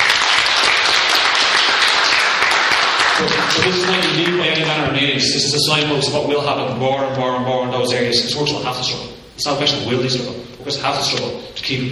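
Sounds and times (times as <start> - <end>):
audience applause: 0.0 - 4.7
speech: 3.2 - 11.9.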